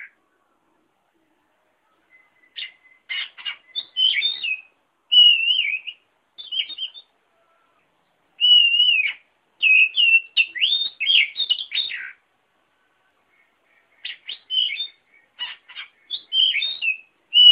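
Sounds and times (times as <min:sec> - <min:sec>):
oriental magpie-robin song: 0:02.1 - 0:07.1, 0:08.4 - 0:12.2, 0:14.0 - 0:17.4.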